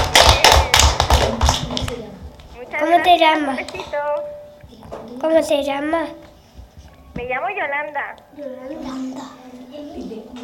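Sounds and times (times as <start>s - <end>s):
loud sharp rhythmic claps: 0.0s - 4.2s
speech: 3.0s - 4.4s, 5.1s - 6.2s, 7.2s - 10.4s.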